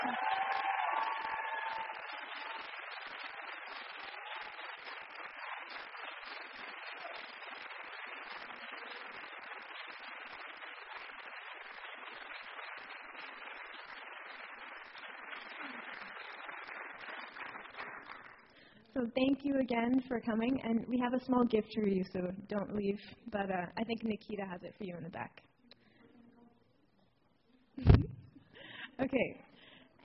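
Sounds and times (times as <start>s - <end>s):
cheers and a high whoop: 0.0s - 3.4s
large audience clapping: 0.0s - 18.8s
speech: 19.0s - 25.5s, 29.2s - 29.4s.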